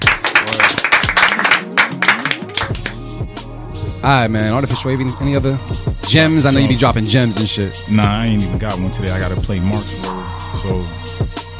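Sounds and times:
audience clapping: 0.0s - 3.0s
speech: 4.0s - 11.0s.

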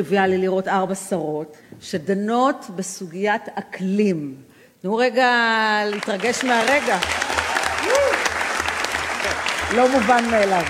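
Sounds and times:
speech: 0.0s - 7.4s, 9.7s - 10.6s
crowd applause: 5.9s - 10.6s.

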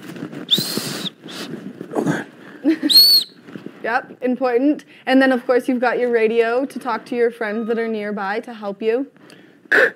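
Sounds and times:
safety whistle blasts: 2.9s - 3.4s
speech: 3.9s - 9.9s.

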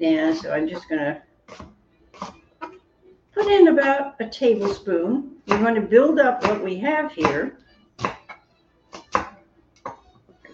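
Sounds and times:
speech: 0.0s - 1.7s, 3.4s - 8.1s
knife chopping onion: 0.2s - 2.8s, 4.5s - 10.0s.

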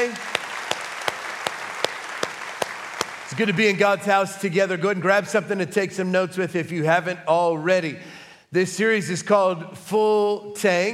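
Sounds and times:
church congregation applauding: 0.0s - 4.2s
speech: 3.3s - 10.9s.

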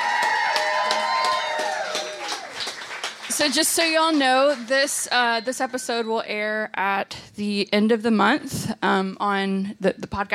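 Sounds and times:
live audience applause: 0.0s - 4.9s
speech: 3.4s - 10.3s.

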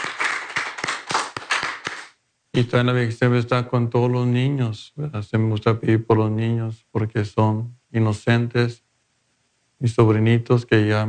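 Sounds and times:
audience clapping: 0.0s - 2.2s
speech: 2.6s - 8.9s, 9.8s - 11.0s.

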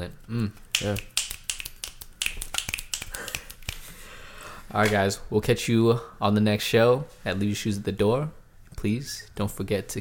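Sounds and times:
speech: 0.0s - 1.1s, 4.7s - 9.9s
crisp finger snaps: 0.5s - 3.9s.

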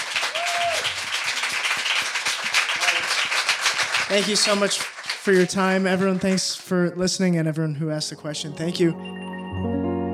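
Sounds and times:
round of applause: 0.0s - 6.6s
speech: 4.1s - 9.2s.

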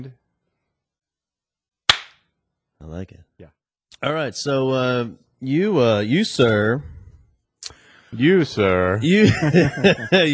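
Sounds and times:
speech: 0.0s - 0.2s, 2.8s - 7.0s, 8.1s - 10.3s
hand clap to sync recording: 1.9s - 2.2s
laughter: 9.0s - 10.3s.

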